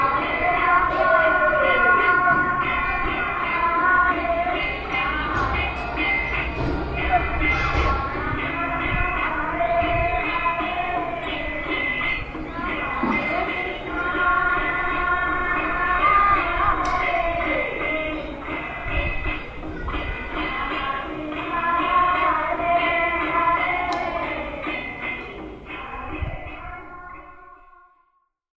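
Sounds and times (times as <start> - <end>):
ashram women singing bhajans: 0.0 - 28.0.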